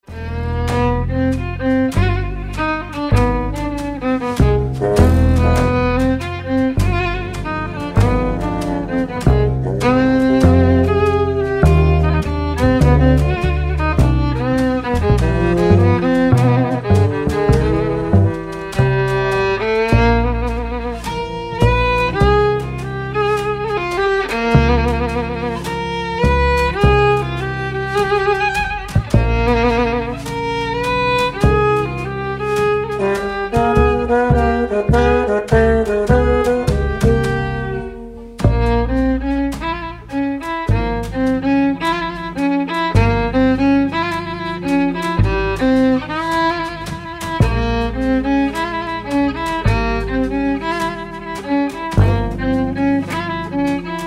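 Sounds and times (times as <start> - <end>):
Lemko bluegrass band playing: 0.1 - 54.0.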